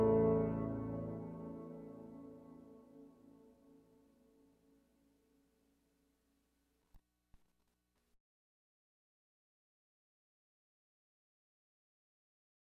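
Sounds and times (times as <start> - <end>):
horn: 0.0 - 2.8.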